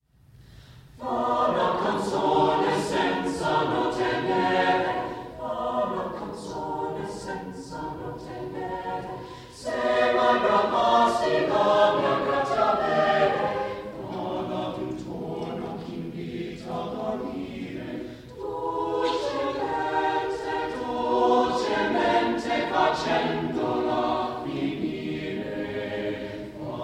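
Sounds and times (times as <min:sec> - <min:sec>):
choir singing: 0:01.0 - 0:26.8.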